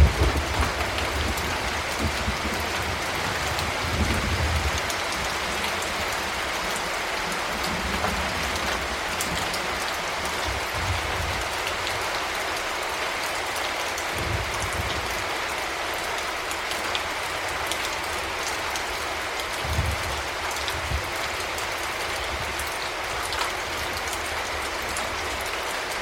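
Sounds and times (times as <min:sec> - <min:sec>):
light spring rain in nature: 0:00.0 - 0:26.0.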